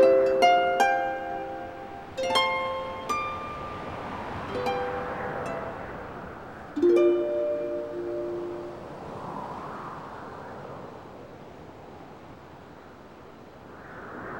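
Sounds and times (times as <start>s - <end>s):
harp playing: 0.0s - 9.2s.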